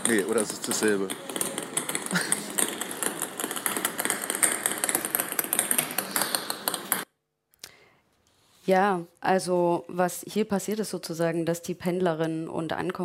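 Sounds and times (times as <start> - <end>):
ping-pong-ball-like sounds: 0.0 - 7.1
speech: 0.1 - 1.4, 2.1 - 2.4, 8.7 - 13.0.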